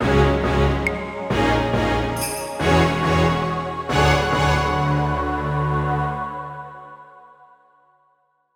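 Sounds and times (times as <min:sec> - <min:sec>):
dungeon entry music: 0:00.0 - 0:06.5.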